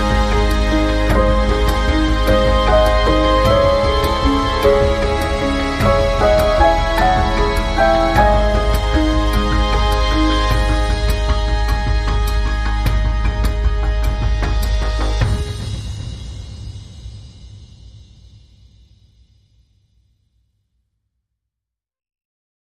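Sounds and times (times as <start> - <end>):
ambient music without cello topline: 0.0 - 17.9.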